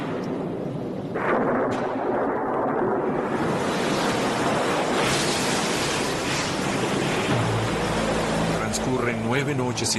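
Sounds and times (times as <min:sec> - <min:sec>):
rainstorm: 0:00.0 - 0:09.9
flood waters: 0:03.1 - 0:09.9
speech: 0:09.3 - 0:09.9.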